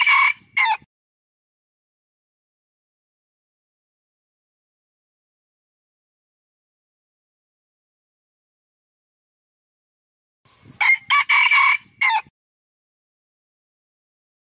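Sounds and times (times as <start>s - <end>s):
red junglefowl crowing: 0.0s - 0.8s, 10.8s - 12.3s.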